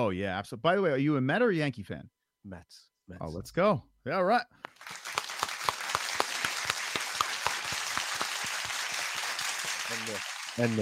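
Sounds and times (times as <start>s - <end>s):
speech: 0.0s - 5.0s, 9.9s - 10.7s
live studio audience applause played as an effect: 4.7s - 10.7s.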